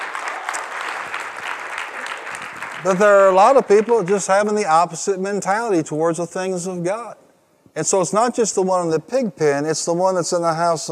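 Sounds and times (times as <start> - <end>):
audience applause: 0.0 - 4.4
speech: 2.8 - 7.2, 7.8 - 10.8.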